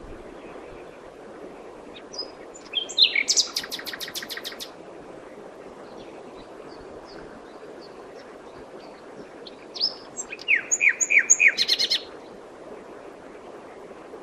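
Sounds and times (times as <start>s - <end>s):
common nightingale singing: 2.2s - 4.7s, 9.8s - 12.1s.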